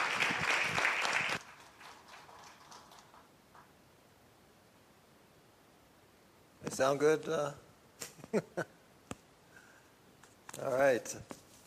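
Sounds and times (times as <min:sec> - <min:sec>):
audience applause: 0:00.0 - 0:03.7
speech: 0:06.7 - 0:07.6, 0:08.3 - 0:08.8, 0:10.6 - 0:11.4.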